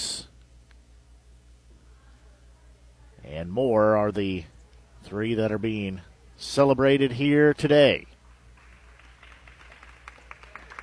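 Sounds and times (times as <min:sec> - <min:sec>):
speech: 0:03.3 - 0:08.1
faint crowd applause: 0:08.3 - 0:10.8.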